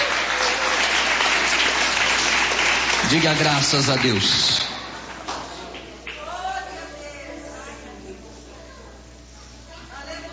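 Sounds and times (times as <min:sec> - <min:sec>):
audience clapping in praise: 0:00.0 - 0:06.4
speech: 0:03.1 - 0:04.7.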